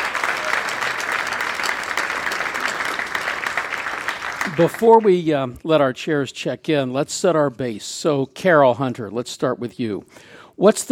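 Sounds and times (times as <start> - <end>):
audience applause: 0.0 - 5.3
speech: 4.6 - 10.9.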